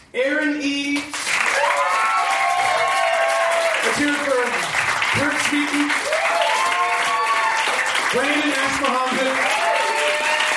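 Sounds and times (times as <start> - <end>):
speech: 0.1 - 1.2
audience applause: 1.1 - 10.5
cheering and whoops: 1.5 - 3.9, 6.0 - 7.9, 9.4 - 10.5.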